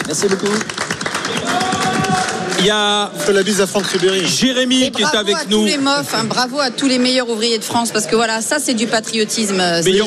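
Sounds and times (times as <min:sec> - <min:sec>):
applause: 0:00.0 - 0:05.0
speech: 0:00.1 - 0:01.8, 0:02.6 - 0:10.0.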